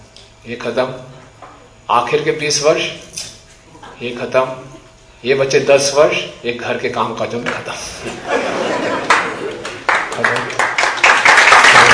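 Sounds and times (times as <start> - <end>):
speech: 0.4 - 1.2, 1.9 - 3.1, 4.0 - 9.1
laughter: 8.0 - 10.1
audience clapping: 8.7 - 11.9.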